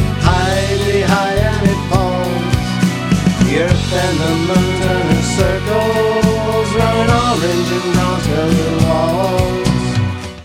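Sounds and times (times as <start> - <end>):
waltz music: 0.0 - 10.4.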